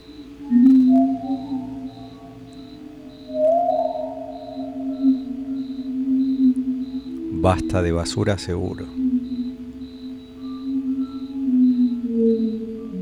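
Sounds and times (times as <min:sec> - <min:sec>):
whale song: 0:00.0 - 0:13.0
speech: 0:07.4 - 0:09.0.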